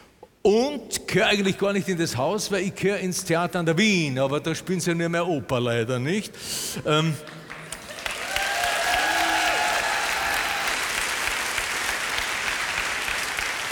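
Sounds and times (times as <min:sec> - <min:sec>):
speech: 0:00.4 - 0:07.4
audience applause: 0:07.3 - 0:13.7.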